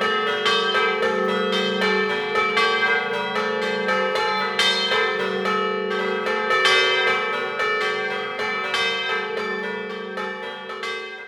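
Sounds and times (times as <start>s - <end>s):
bells ringing a scampanottata in Maseris: 0.0s - 11.2s.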